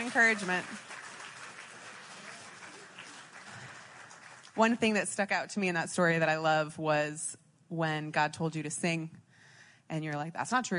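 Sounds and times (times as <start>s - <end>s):
crowd applauding: 0.0s - 4.9s
speech: 0.1s - 0.9s, 4.6s - 9.2s, 9.9s - 10.7s.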